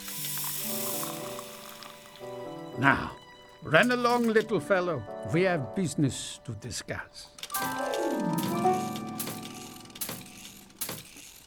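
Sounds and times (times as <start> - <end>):
hot water poured from teapot into a cup: 0.0 - 2.6
speech: 2.8 - 8.8.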